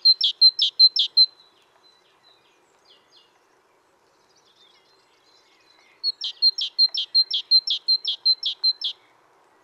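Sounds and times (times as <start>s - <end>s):
Parus major calling: 0.0s - 1.4s, 5.7s - 9.0s.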